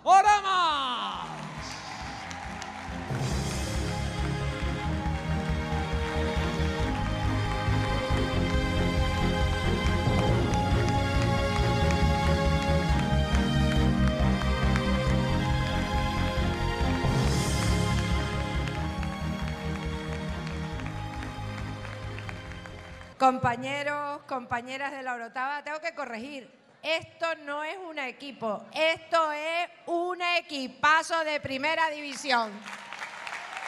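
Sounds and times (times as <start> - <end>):
audience applause: 1.0 - 23.2, 32.6 - 33.6
speech: 23.2 - 32.8.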